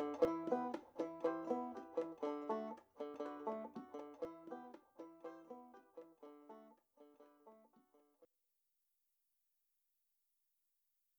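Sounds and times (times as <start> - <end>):
banjo trance music: 0.0 - 7.6.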